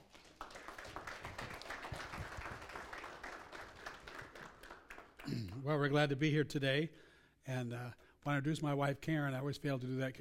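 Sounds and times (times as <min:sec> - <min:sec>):
church audience applauding a guest minister: 0:00.0 - 0:05.3
speech: 0:05.3 - 0:10.1.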